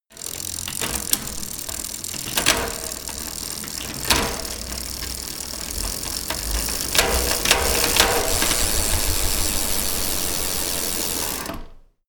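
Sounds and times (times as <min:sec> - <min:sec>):
bicycle wheel spinning: 0:00.1 - 0:11.8.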